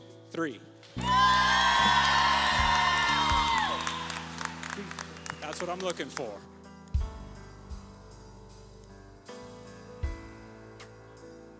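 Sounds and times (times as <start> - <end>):
speech: 0.3 - 2.0, 5.5 - 6.6
audience cheering: 1.0 - 6.2.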